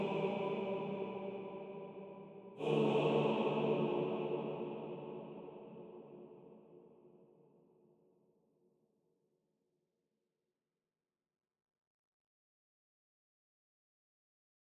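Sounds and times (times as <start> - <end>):
choir singing into a microphone: 0.0 - 6.2.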